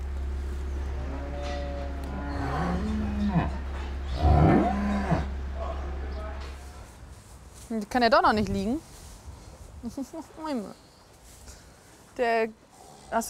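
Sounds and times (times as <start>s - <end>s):
cows mooing in a barn: 0.8s - 6.8s
speech: 7.8s - 8.9s, 9.8s - 10.8s, 12.2s - 13.2s.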